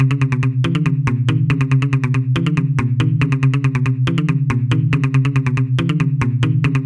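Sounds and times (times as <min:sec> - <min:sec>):
muted bass: 0:00.0 - 0:06.8.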